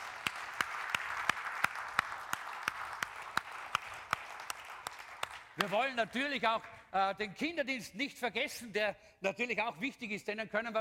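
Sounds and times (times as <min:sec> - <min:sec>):
audience applause: 0:00.0 - 0:06.0
speech: 0:05.6 - 0:10.7.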